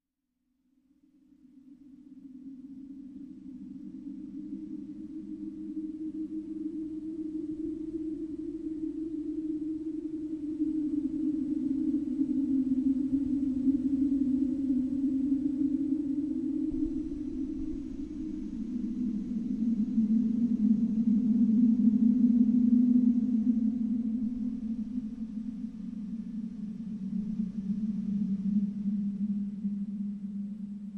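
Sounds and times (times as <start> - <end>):
ghostly swirling spirit air: 3.5 - 30.9.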